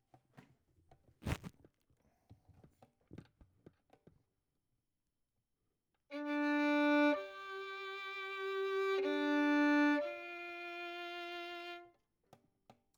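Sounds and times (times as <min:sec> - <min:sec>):
violin: 0:06.1 - 0:12.0.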